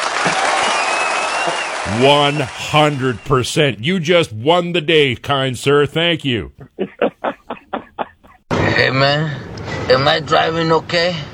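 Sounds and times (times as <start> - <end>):
clapping: 0.0 - 3.3
speech: 1.5 - 6.8, 8.9 - 11.3
laughter: 6.5 - 8.9.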